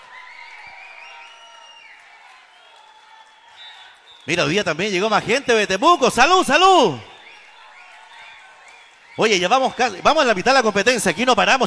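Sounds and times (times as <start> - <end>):
whoops and whistles: 0.0 - 4.5, 5.8 - 10.2
crowd clapping and cheering: 0.0 - 11.6
speech: 4.2 - 7.1, 9.2 - 11.6.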